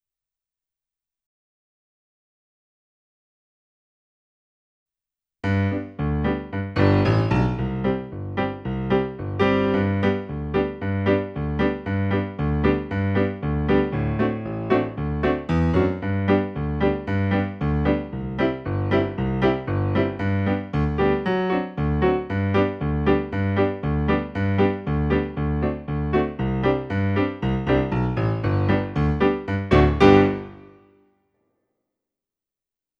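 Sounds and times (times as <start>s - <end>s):
musical accompaniment: 5.5s - 31.0s.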